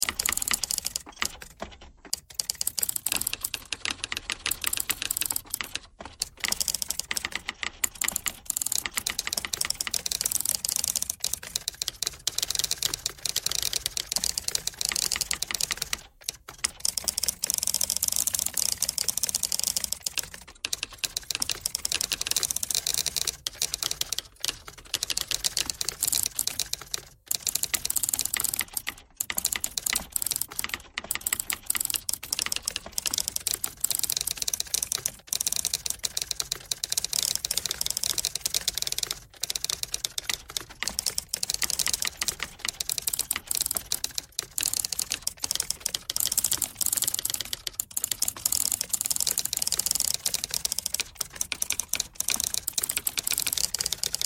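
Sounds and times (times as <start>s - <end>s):
pentatonic typewriter tones: 0.0s - 54.2s.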